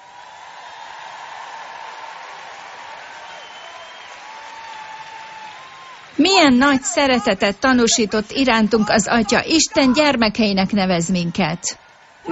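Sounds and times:
audience applause: 0.0 - 8.9, 11.7 - 12.3
speech: 6.2 - 12.3.

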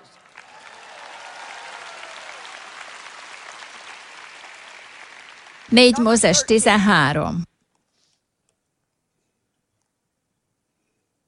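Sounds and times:
audience applause: 0.0 - 7.0
speech: 5.7 - 7.5.

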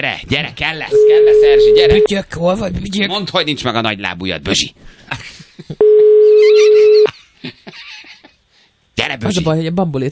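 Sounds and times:
speech: 0.0 - 5.8, 9.3 - 10.1
steady telephone tone: 0.9 - 2.1, 5.8 - 7.1.

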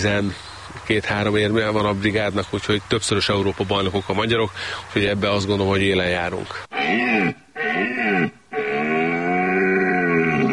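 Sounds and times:
speech: 0.0 - 7.4
rutting stag bellowing: 6.7 - 10.5.

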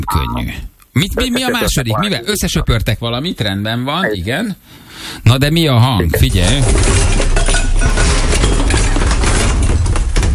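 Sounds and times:
speech: 0.1 - 7.2
shelf breaking and objects tumbling down: 6.6 - 10.3.

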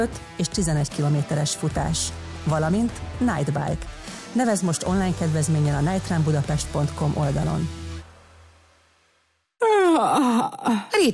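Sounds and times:
speech: 0.0 - 7.8, 10.0 - 11.1
person yawning: 9.6 - 11.0.

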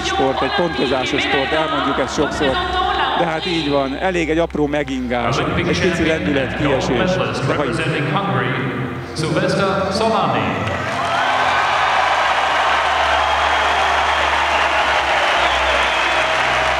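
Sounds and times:
speech: 0.2 - 10.9
audience applause at medal ceremony: 10.8 - 16.7.

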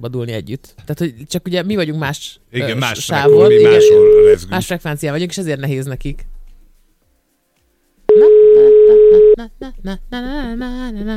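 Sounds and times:
speech: 0.0 - 6.3, 9.4 - 11.1
telephone tone while placing a call: 3.2 - 4.4, 8.1 - 9.4.

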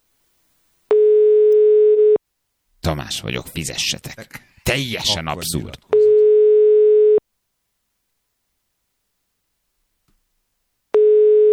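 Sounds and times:
telephone ring tone of an unanswered call: 0.9 - 2.2, 5.9 - 7.2, 11.0 - 11.5
speech: 2.8 - 5.9.

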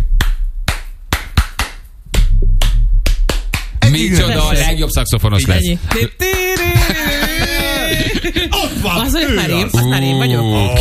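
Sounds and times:
sharp hand claps: 0.2 - 3.8
speech: 4.9 - 6.8, 7.9 - 10.7
laughter: 6.3 - 10.7.

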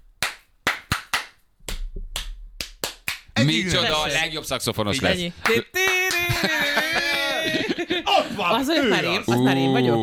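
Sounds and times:
hand clapping a rhythm back: 0.1 - 4.1, 5.4 - 7.4
speech: 3.4 - 7.0, 7.7 - 10.0
laughter: 4.9 - 10.0.

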